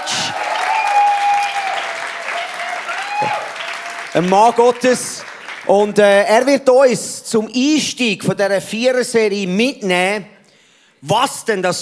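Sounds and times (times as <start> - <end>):
audience applause: 0.0 - 5.7
speech: 4.2 - 10.3, 11.0 - 11.8.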